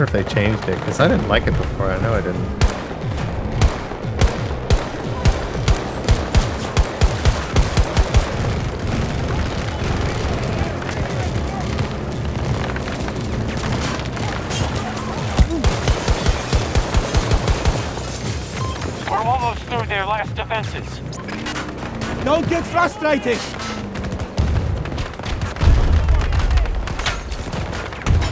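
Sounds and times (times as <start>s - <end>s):
speech: 0.0s - 2.8s, 20.5s - 21.2s, 22.2s - 23.6s
constant rumbling battle din in a video game: 0.0s - 19.8s, 21.3s - 28.2s
automatic AK rifle fire in a video game: 2.6s - 10.8s, 15.4s - 18.4s.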